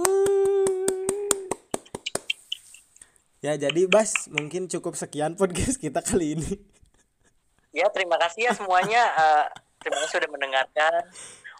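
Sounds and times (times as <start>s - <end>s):
rhythmic hand clapping: 0.0s - 2.5s, 3.6s - 4.6s
speech: 3.4s - 6.8s, 7.7s - 11.5s
laughter: 8.4s - 10.3s.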